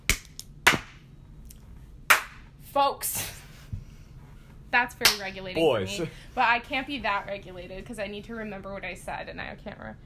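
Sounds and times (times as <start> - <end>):
hand clapping: 2.1 - 2.4, 5.0 - 5.3
speech: 2.8 - 3.4, 4.7 - 10.0.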